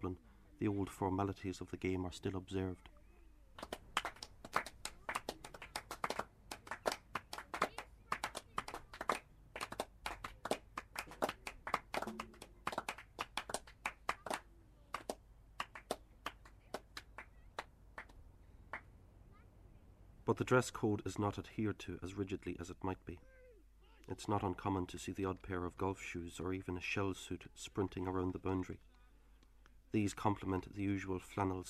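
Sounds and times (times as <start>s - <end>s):
speech: 0.0s - 3.0s, 20.4s - 23.4s, 24.1s - 28.9s, 29.9s - 31.6s
applause at a cricket match: 3.6s - 18.9s.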